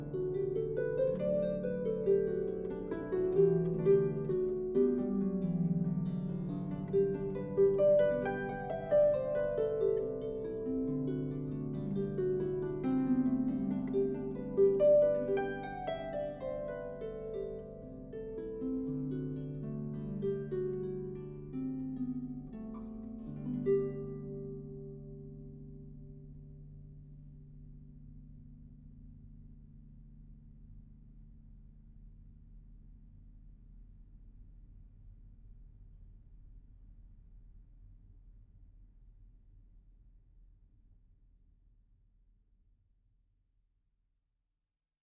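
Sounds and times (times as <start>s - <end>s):
harp playing: 0.0s - 26.3s.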